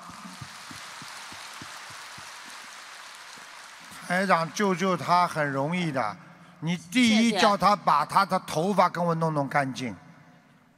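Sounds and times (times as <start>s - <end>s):
crowd audience applause: 0.0s - 6.0s
speech: 4.1s - 10.0s.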